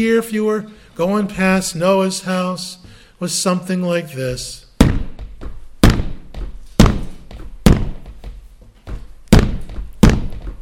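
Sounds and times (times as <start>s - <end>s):
speech: 0.0s - 4.6s
hammer pounding: 4.3s - 10.6s.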